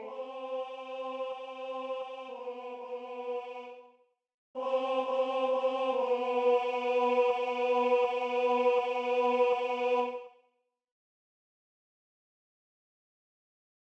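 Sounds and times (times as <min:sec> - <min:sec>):
tenor singing: 0:00.0 - 0:03.8, 0:04.6 - 0:10.2.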